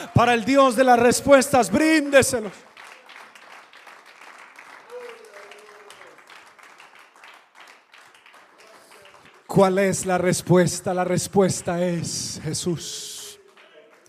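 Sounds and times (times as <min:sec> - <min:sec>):
speech: 0:00.0 - 0:02.7, 0:09.6 - 0:13.1
audience applause: 0:01.8 - 0:09.6, 0:13.4 - 0:14.0.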